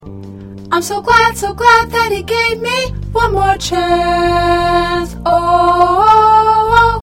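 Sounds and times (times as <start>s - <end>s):
alto choir part singing: 1.6s - 7.0s.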